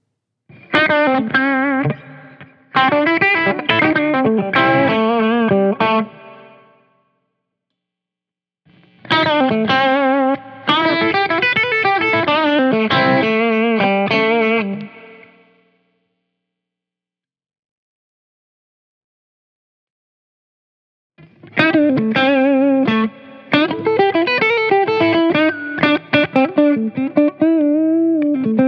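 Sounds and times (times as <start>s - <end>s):
electric guitar with Porter gold foil pickups playing picked and strummed chords: 0.5s - 6.8s, 8.7s - 15.9s, 21.2s - 28.6s.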